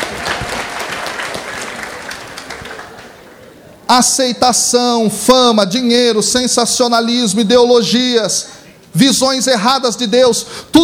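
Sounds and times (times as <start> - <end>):
audience applause: 0.0 - 3.4
speech: 3.9 - 10.8.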